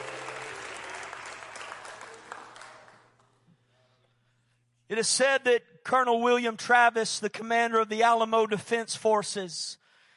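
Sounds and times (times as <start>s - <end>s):
crowd applause: 0.0s - 3.2s
speech: 4.9s - 9.8s.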